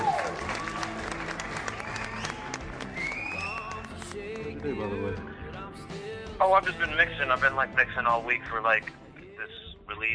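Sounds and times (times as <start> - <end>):
audience applause: 0.0 - 4.8
speech: 4.6 - 5.4, 6.4 - 10.1.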